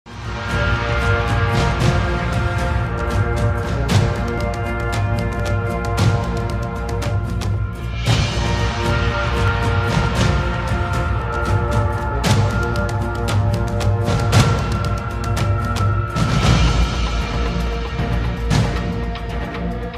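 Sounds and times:
grassland battle music: 0.1s - 19.9s.

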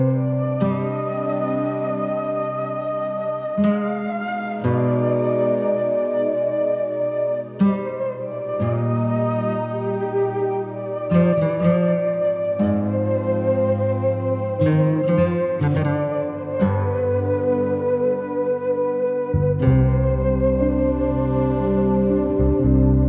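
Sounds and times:
spooky background music loop in C minor at 120 bpm: 0.2s - 23.0s.

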